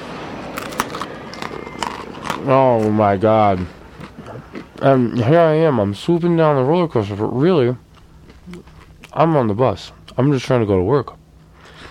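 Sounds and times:
biting into a piece of toast: 0.6s - 3.0s, 7.9s - 9.2s
speech: 2.4s - 3.8s, 4.8s - 7.8s, 8.5s - 11.2s.

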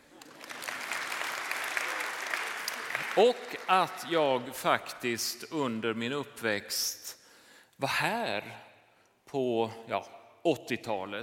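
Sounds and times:
audience applause: 0.0s - 4.4s
speech: 3.2s - 7.2s, 7.8s - 8.7s, 9.3s - 11.2s.

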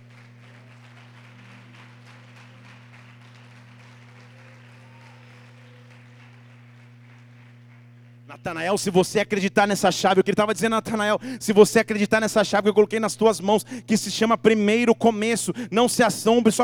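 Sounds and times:
audience applause: 0.0s - 9.1s
constant low electrical hum: 0.0s - 16.6s
speech: 8.3s - 16.6s.

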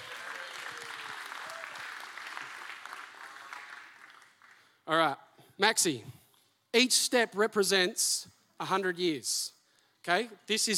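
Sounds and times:
round of applause: 0.0s - 4.8s
speech: 4.9s - 6.2s, 6.8s - 10.7s.

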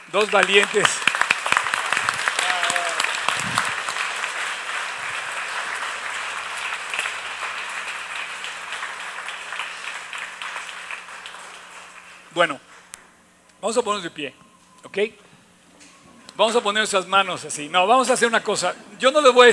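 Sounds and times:
audience applause: 0.0s - 12.3s
speech: 0.1s - 1.2s, 12.4s - 12.7s, 13.6s - 15.2s, 16.4s - 19.5s
person cheering: 2.3s - 3.2s.

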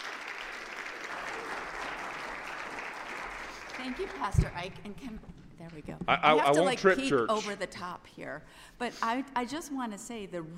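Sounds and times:
church congregation applauding to welcome a speaker: 0.0s - 4.5s
speech: 3.8s - 10.5s.

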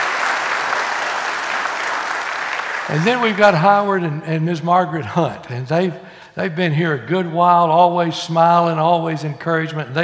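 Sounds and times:
audience clapping in welcome: 0.0s - 4.0s
speech: 2.9s - 10.0s.

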